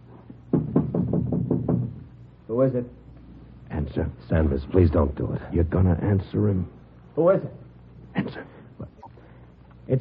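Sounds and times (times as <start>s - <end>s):
knock on a door: 0.5s - 2.1s
speech: 2.6s - 3.0s, 3.9s - 7.6s.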